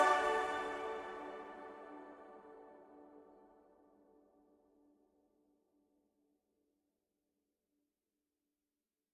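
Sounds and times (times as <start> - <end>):
solo choral singing: 0.0 - 2.9.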